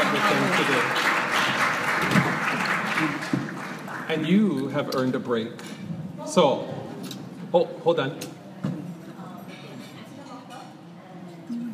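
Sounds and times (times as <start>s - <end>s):
audience applause honoring panelists at a panel event: 0.0s - 4.4s
speech: 4.1s - 5.7s, 6.3s - 6.8s, 7.5s - 8.3s.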